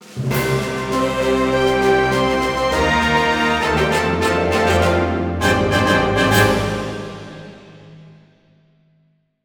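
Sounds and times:
jingle: 0.3s - 7.9s.

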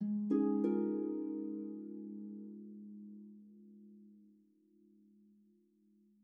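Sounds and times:
calm harp: 0.0s - 5.5s.

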